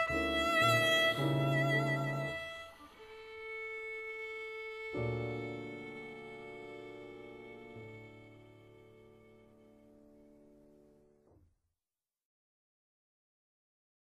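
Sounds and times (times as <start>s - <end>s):
violin: 0.0s - 10.8s
piano: 0.0s - 11.5s.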